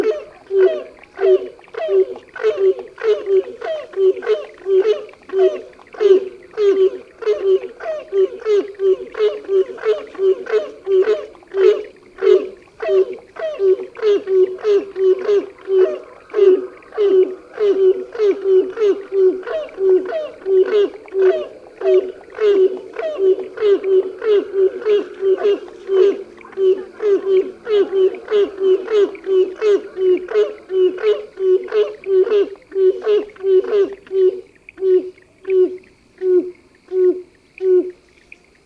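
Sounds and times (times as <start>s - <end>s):
Grey Crowned Crane calling: 0.0s - 38.5s.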